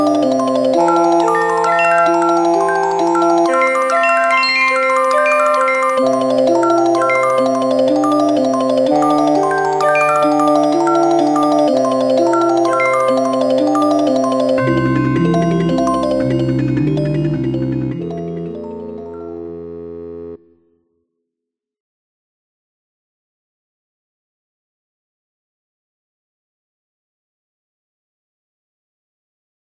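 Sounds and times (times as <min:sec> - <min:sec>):
slendro scale tones: 0:00.5 - 0:19.6.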